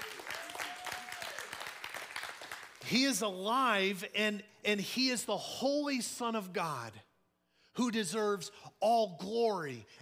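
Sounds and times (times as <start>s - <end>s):
audience applauding: 0.0s - 2.9s
speech: 2.8s - 7.1s, 7.8s - 10.0s.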